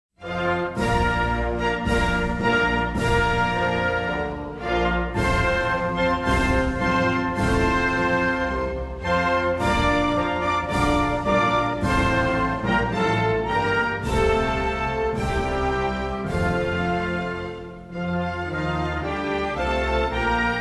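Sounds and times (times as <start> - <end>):
national anthem: 0.2 - 20.5.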